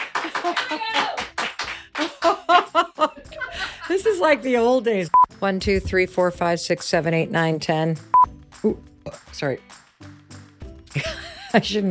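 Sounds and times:
laughter: 0:00.0 - 0:01.2, 0:01.9 - 0:04.4, 0:11.0 - 0:11.7
hands clapping: 0:00.0 - 0:02.8
speech: 0:00.4 - 0:01.2, 0:04.2 - 0:09.8, 0:11.6 - 0:11.8.

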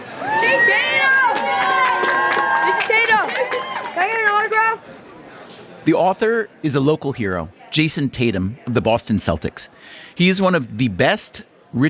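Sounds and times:
crowd gathering outside bookstore chattering: 0:00.0 - 0:11.8
speech: 0:05.8 - 0:11.8.

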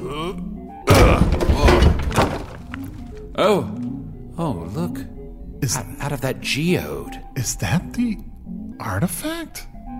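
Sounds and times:
speech: 0:00.1 - 0:01.4, 0:03.4 - 0:09.7
door being knocked down: 0:00.9 - 0:03.2.

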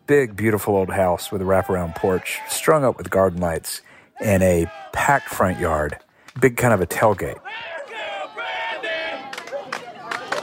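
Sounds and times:
speech: 0:00.1 - 0:07.7
crowd chanting: 0:00.6 - 0:05.7, 0:07.4 - 0:10.4.

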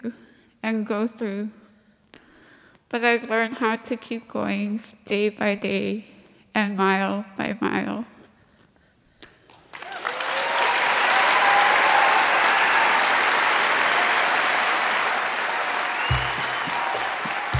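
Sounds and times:
speech: 0:00.0 - 0:01.6, 0:02.9 - 0:08.1
standing ovation from about 1,200 people in Anchorage: 0:09.5 - 0:17.5.

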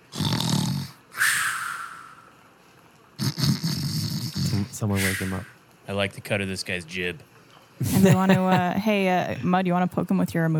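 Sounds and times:
loud snoring: 0:00.0 - 0:01.0, 0:03.2 - 0:04.6
speech: 0:04.8 - 0:10.5
laughter: 0:07.8 - 0:08.8.

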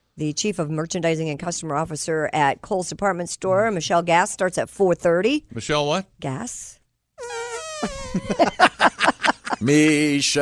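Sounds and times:
speech: 0:00.2 - 0:06.8, 0:07.8 - 0:08.9, 0:09.6 - 0:10.4
two people making mouth fart noises: 0:07.2 - 0:08.4
laughter: 0:07.8 - 0:10.4.

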